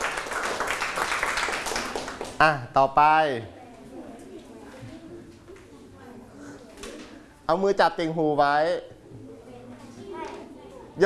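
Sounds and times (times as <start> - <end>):
group of children clapping hands: 0.0 - 2.4
speech: 2.4 - 3.6, 7.5 - 8.9.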